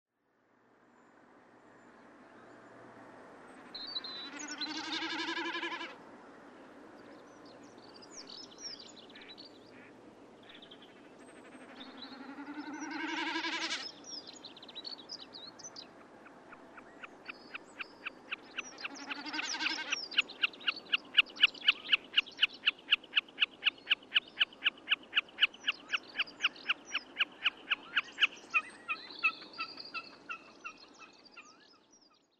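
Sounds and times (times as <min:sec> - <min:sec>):
songbirds twittering: 0:03.5 - 0:05.9, 0:06.5 - 0:32.3
Snipe calling: 0:11.5 - 0:13.9, 0:18.3 - 0:30.5.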